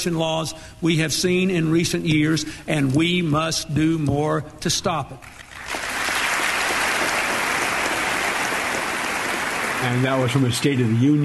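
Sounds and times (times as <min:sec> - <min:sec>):
speech: 0:00.0 - 0:05.4, 0:09.8 - 0:11.2
large crowd giving standing ovation applause: 0:05.3 - 0:10.6.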